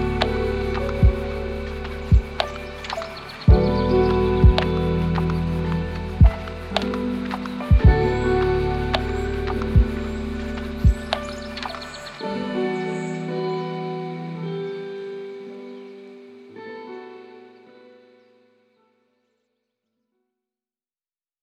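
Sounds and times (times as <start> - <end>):
lofi hip hop: 0.0 - 12.3.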